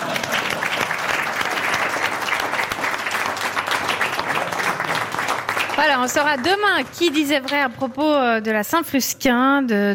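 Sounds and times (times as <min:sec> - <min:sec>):
audience applause: 0:00.0 - 0:07.4
speech: 0:05.8 - 0:09.9.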